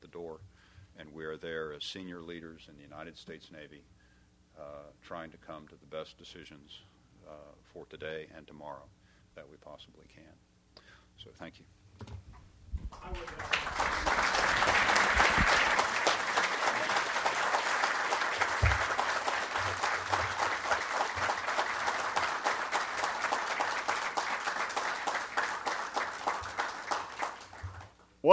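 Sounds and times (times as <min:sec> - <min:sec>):
speech: 0:00.2 - 0:04.0, 0:04.6 - 0:10.5, 0:11.2 - 0:12.3, 0:13.0 - 0:14.1
audience applause: 0:13.0 - 0:28.3.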